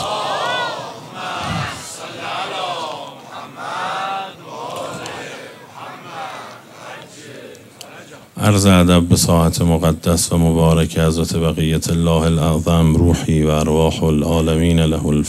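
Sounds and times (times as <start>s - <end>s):
congregation reciting salawat in unison: 0.0s - 8.8s
speech: 8.5s - 15.2s.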